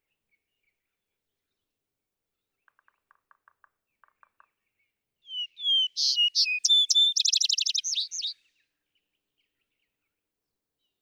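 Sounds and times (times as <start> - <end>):
vesper sparrow song: 5.3 - 8.4.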